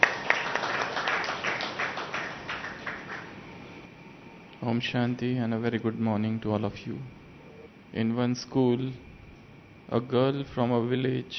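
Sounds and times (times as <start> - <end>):
audience applause at a Brahma Kumaris gathering: 0.0 - 3.5
speech: 4.6 - 7.2, 7.9 - 9.1, 9.9 - 11.3.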